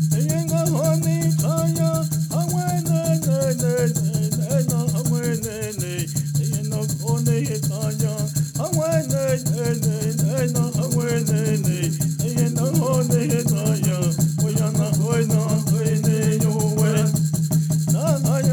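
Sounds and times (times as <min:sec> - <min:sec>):
intertribal peyote song singing: 0:00.1 - 0:18.5.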